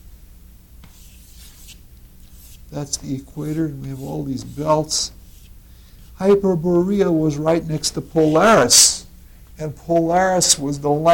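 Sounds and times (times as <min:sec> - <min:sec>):
drawing a picture of the earth on a board: 0:00.8 - 0:06.4
speech: 0:02.7 - 0:05.2, 0:06.2 - 0:09.0, 0:09.6 - 0:11.1.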